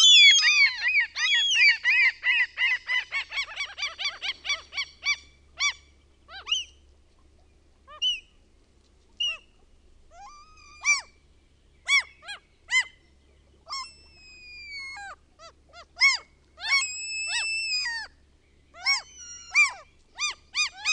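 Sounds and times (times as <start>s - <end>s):
Common gull yelping and mewing calls: 0.0s - 6.8s, 10.2s - 11.2s, 11.9s - 13.0s, 13.6s - 18.2s, 18.8s - 20.9s.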